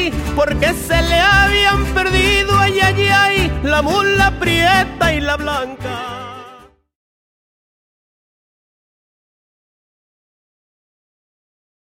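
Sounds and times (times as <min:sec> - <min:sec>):
mariachi music: 0:00.0 - 0:07.0.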